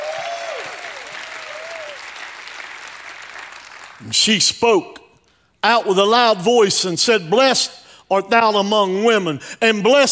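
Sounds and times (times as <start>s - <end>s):
audience hand clapping: 0.0s - 4.1s
speech: 4.0s - 5.0s, 5.6s - 10.0s.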